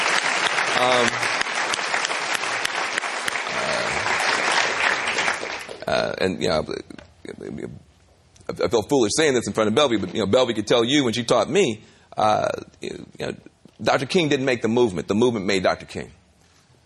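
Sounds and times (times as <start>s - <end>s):
audience applause: 0.0s - 5.8s
speech: 0.8s - 1.3s, 6.2s - 7.9s, 8.5s - 16.2s.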